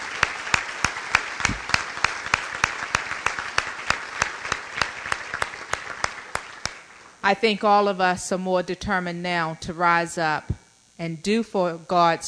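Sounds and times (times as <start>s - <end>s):
audience applause: 0.0s - 7.2s
speech: 7.3s - 12.2s.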